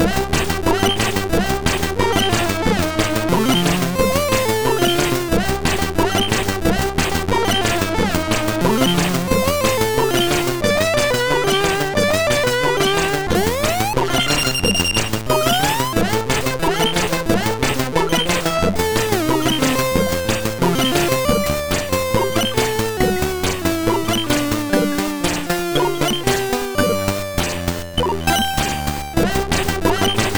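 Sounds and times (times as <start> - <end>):
SID MOS 6581R4 chip music: 0.0 - 30.3.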